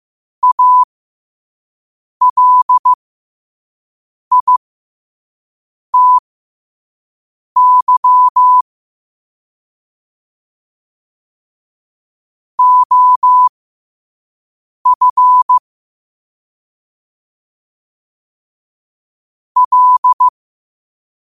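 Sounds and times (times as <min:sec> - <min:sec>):
morse code at 5 wpm: 0:00.4 - 0:00.9, 0:02.2 - 0:03.0, 0:04.3 - 0:04.6, 0:06.0 - 0:06.2, 0:07.6 - 0:08.6, 0:12.6 - 0:13.5, 0:14.9 - 0:15.6, 0:19.6 - 0:20.3.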